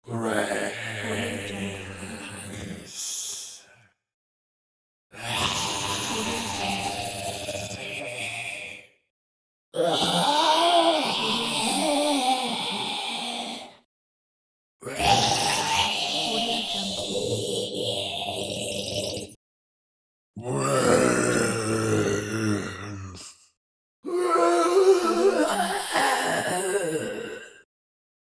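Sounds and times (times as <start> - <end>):
zombies: 0.1 - 3.0, 5.2 - 8.7, 9.8 - 13.8, 14.8 - 19.3, 20.4 - 23.5, 24.1 - 27.7.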